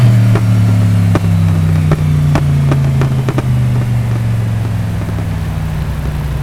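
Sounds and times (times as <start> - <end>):
engine revving down: 0.0 - 6.4.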